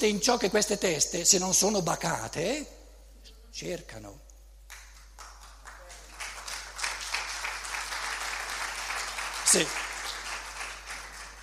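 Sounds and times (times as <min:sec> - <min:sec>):
speech: 0:00.0 - 0:02.8, 0:03.6 - 0:04.2, 0:09.5 - 0:09.8
audience applause: 0:05.2 - 0:11.4.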